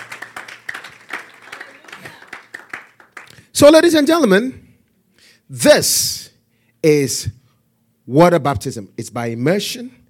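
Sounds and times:
audience clapping: 0.0s - 3.5s
speech: 3.6s - 4.6s, 5.5s - 6.2s, 6.8s - 7.4s, 8.1s - 10.0s.

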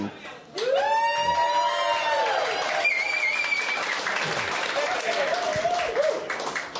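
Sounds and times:
crowd applause: 0.6s - 6.7s
high whistles: 2.8s - 4.1s.

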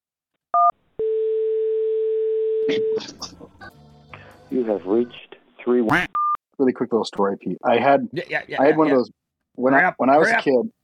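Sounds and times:
steady low telephone line tone: 0.6s - 3.0s
speech: 2.7s - 3.9s, 4.5s - 10.8s
recorded voice speaking: 4.5s - 10.8s.

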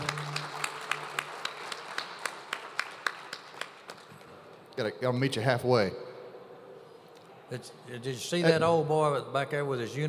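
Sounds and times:
hand clapping: 0.0s - 4.4s
speech: 4.8s - 6.0s, 7.5s - 10.0s.

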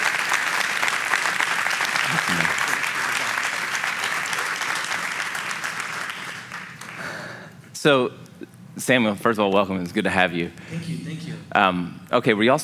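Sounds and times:
audience applause welcoming a guest onto a stage: 0.0s - 7.4s
speech: 7.8s - 8.2s, 8.8s - 12.6s.

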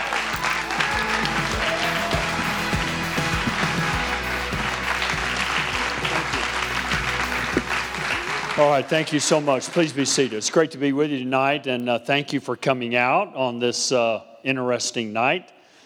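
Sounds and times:
church congregation applauding to welcome a pastor: 0.0s - 10.8s
speech: 8.6s - 15.6s.

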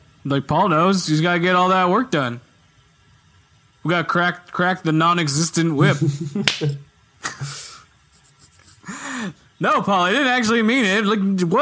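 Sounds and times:
speech: 0.2s - 2.5s, 3.8s - 7.6s, 9.2s - 11.6s
laughter: 5.8s - 9.0s
knuckles cracking: 6.4s - 6.8s.

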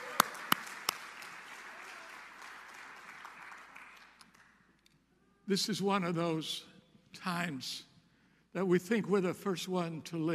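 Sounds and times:
audience applause: 0.0s - 4.5s
speech: 5.5s - 7.9s, 8.5s - 10.3s.

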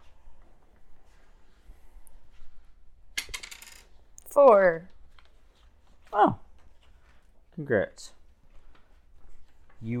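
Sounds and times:
small die clattering onto a hard table: 3.2s - 3.9s
speech: 4.4s - 4.9s, 6.2s - 6.4s, 7.6s - 8.2s, 9.8s - 9.9s.

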